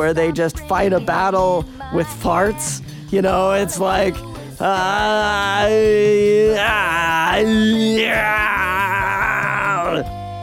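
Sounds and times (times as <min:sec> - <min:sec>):
speech: 0:00.0 - 0:10.2
man vocally imitating someone suffocating: 0:04.6 - 0:10.1.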